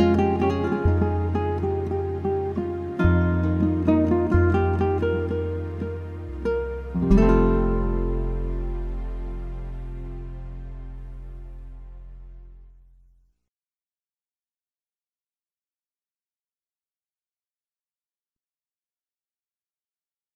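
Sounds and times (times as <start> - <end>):
acoustic praise instrumental music: 0.0 - 13.1.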